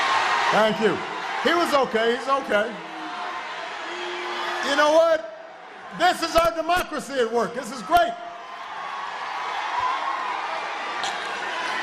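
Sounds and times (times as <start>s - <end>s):
large crowd booing: 0.0s - 6.4s, 8.3s - 11.8s
speech: 0.5s - 2.9s, 4.6s - 5.3s, 5.9s - 8.2s.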